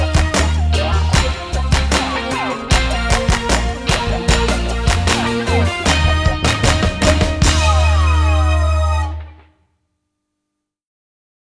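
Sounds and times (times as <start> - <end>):
rap rhythm: 0.0 - 9.1
percussion: 0.0 - 9.2.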